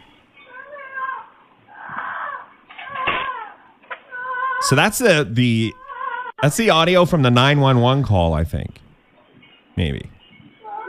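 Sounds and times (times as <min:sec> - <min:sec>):
parrot screeching like a woman screaming: 0:00.5 - 0:04.6
speech: 0:04.6 - 0:05.8, 0:06.4 - 0:08.8, 0:09.8 - 0:10.1.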